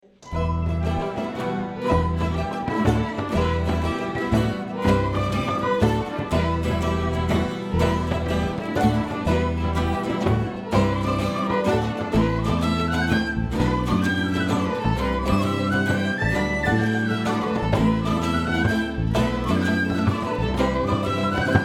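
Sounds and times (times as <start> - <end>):
Irish folk medley: 0.3 - 21.6.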